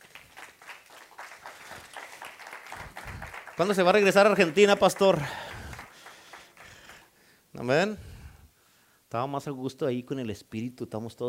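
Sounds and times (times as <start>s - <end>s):
audience applauding: 0.0s - 7.1s
speech: 3.6s - 5.4s, 7.6s - 8.1s, 9.1s - 11.2s.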